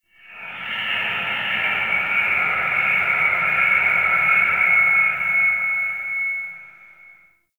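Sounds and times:
audio feedback inside a stadium: 0:00.0 - 0:07.5.

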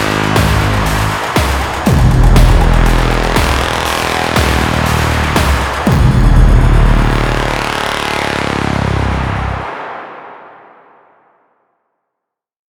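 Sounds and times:
login music: 0:00.0 - 0:09.6.

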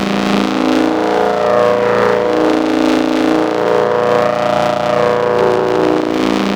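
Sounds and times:
ambient tech drone: 0:00.0 - 0:05.5.

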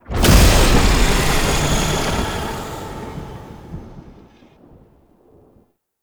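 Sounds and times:
mirror defense rune despawn sound: 0:00.1 - 0:04.3.

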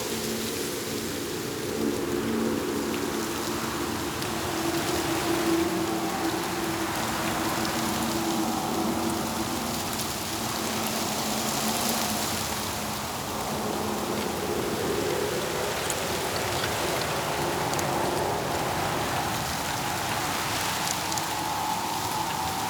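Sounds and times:
eerie forest breeze: 0:00.0 - 0:22.6.

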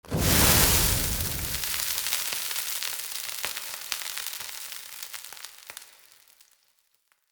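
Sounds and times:
water extinguishing fire: 0:00.0 - 0:02.4.

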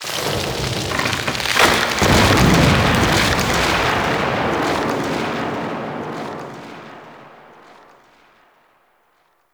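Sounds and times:
distant tree falling in a forest: 0:00.0 - 0:08.5.

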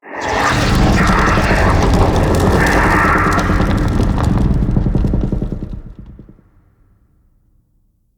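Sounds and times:
tree creaking: 0:00.2 - 0:06.5.

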